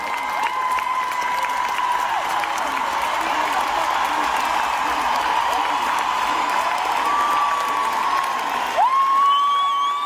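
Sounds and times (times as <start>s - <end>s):
crowd cheering: 0.0s - 10.0s
shrill rising whistle: 9.2s - 10.0s.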